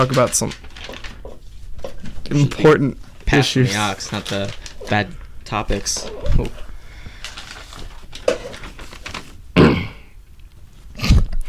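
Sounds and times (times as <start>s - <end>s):
speech: 0.0s - 0.7s, 2.3s - 6.7s
throat clearing: 9.6s - 10.1s, 11.0s - 11.4s.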